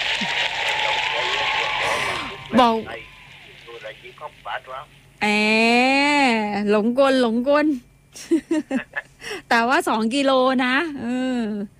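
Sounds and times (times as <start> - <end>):
applause: 0.0 - 4.3
speech: 2.6 - 3.1, 4.0 - 11.7.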